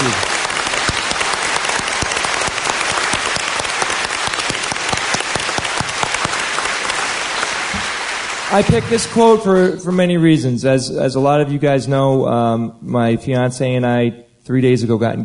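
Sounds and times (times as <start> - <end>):
audience applause: 0.0 - 9.6
speech: 8.6 - 15.2.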